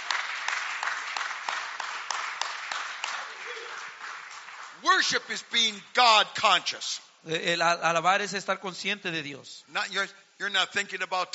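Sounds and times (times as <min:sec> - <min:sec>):
audience clapping in a steady rhythmic beat: 0:00.0 - 0:05.8
speech: 0:04.8 - 0:11.3.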